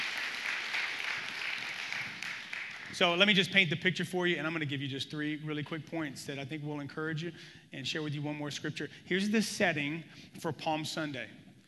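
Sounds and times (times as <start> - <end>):
audience clapping hands: 0.0 - 3.2
speech: 3.0 - 11.4.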